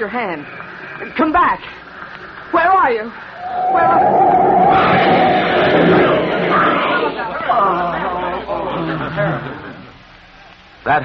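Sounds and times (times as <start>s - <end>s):
speech: 0.0s - 1.8s, 2.5s - 6.1s, 10.8s - 11.0s
crowd chatter on a busy city street on Easter Sunday: 3.4s - 10.0s.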